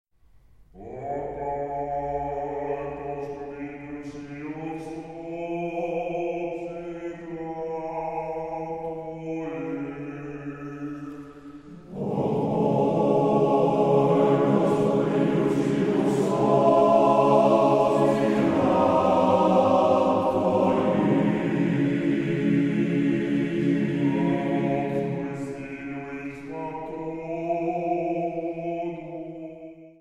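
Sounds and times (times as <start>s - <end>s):
Byzantine male choir chanting in traditional style: 0.8s - 29.9s.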